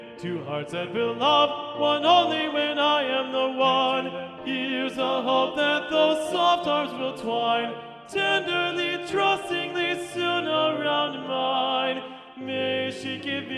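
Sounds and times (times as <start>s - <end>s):
TTBB male choir singing a drinking song with first tenor predominant: 0.0s - 13.5s.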